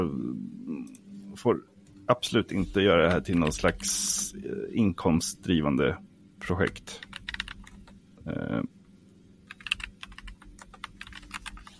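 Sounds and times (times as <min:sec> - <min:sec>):
speech: 0:00.0 - 0:00.3, 0:01.4 - 0:07.1, 0:08.2 - 0:08.8
quick typing on a computer keyboard: 0:03.0 - 0:03.9, 0:06.6 - 0:08.0, 0:09.5 - 0:11.7.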